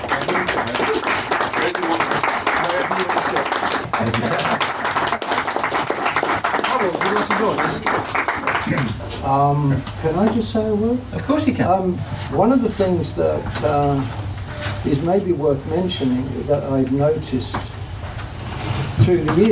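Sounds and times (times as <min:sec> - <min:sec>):
audience round of applause: 0:00.0 - 0:09.1
speech: 0:07.4 - 0:14.2, 0:14.8 - 0:17.7, 0:19.1 - 0:19.5.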